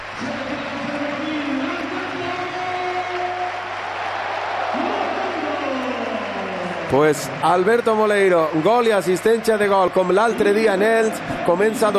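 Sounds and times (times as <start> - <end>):
stadium crowd ovation: 0.0 - 11.9
speech: 6.9 - 11.9.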